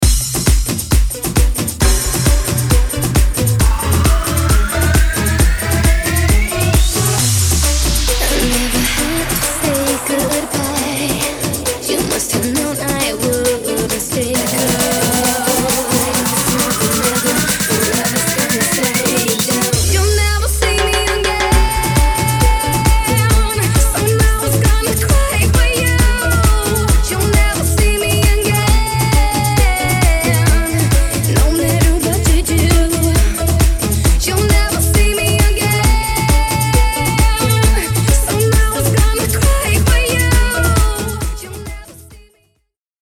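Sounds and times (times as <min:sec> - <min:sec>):
guaracha bootleg remix: 0:00.0 - 0:42.3.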